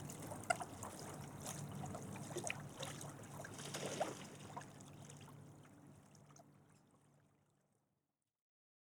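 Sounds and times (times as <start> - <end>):
ducks being fed in water: 0.0 - 7.2.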